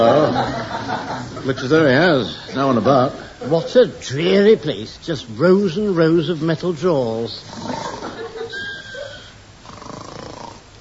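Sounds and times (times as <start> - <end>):
laughter: 0.0 - 4.0, 7.6 - 9.3
speech: 0.0 - 8.0
person snoring: 7.5 - 8.2, 9.0 - 10.6.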